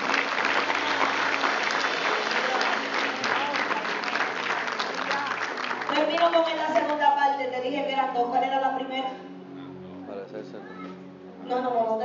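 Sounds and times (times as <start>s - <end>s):
audience applauding: 0.0s - 7.0s
speech: 6.2s - 9.3s, 10.3s - 12.0s.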